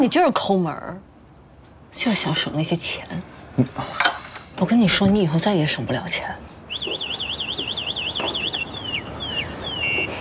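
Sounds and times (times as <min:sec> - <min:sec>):
speech: 0:00.0 - 0:01.1, 0:01.9 - 0:07.0
electric scooter alarm: 0:06.7 - 0:10.1.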